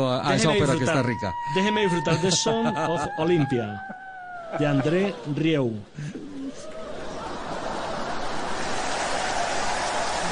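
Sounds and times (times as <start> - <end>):
speech: 0.0 - 6.2
laughter: 1.6 - 10.2
applause: 8.5 - 10.2.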